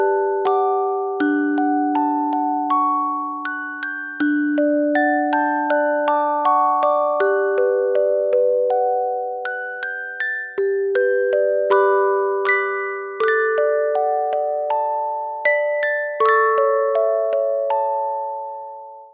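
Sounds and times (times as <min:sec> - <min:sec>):
tender music box melody: 0:00.0 - 0:19.1.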